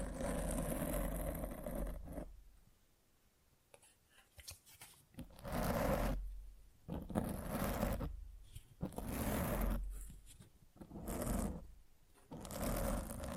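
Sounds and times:
scratching and rubbing against a microphone: 0:00.0 - 0:02.3, 0:04.5 - 0:06.2, 0:06.9 - 0:11.7, 0:12.3 - 0:13.3.

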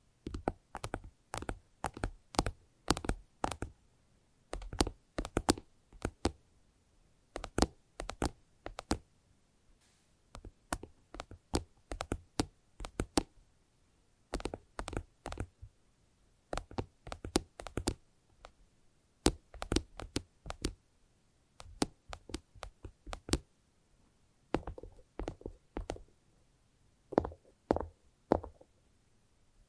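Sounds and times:
rapid fingertip tapping: 0:00.2 - 0:03.7, 0:04.5 - 0:06.4, 0:07.4 - 0:09.0, 0:10.3 - 0:13.3, 0:14.3 - 0:15.7, 0:16.5 - 0:18.6, 0:19.2 - 0:20.8, 0:21.6 - 0:23.4, 0:24.5 - 0:26.1, 0:27.1 - 0:28.7.

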